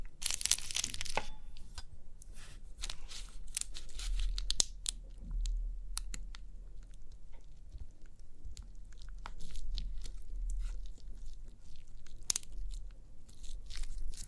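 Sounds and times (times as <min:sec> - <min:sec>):
crinkly pimple popping: 0:00.1 - 0:01.8, 0:02.8 - 0:14.2.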